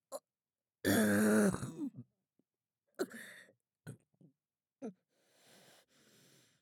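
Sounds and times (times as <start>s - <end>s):
small burp: 0.9s - 2.0s.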